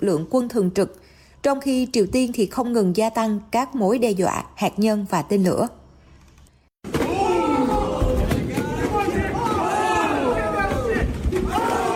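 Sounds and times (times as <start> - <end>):
speech: 0.0 - 5.8
excited crowd shouting and cheering at a humanoid robot fighting match: 6.9 - 11.9.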